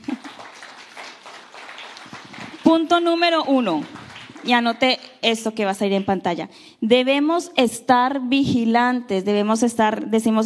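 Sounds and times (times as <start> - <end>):
audience applause: 0.0 - 4.8
speech: 2.7 - 10.4.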